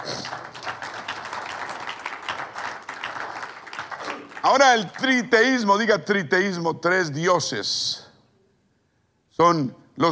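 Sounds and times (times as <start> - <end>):
audience applause: 0.0 - 5.4
speech: 4.4 - 8.0, 9.4 - 10.1.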